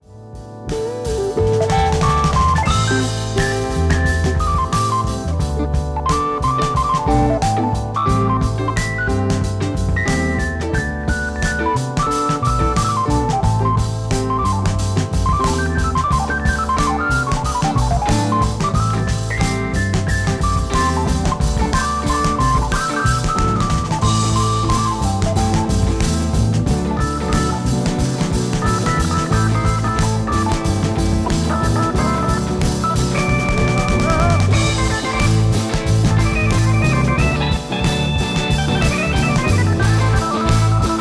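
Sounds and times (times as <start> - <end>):
organ solo: 0.0 - 40.9.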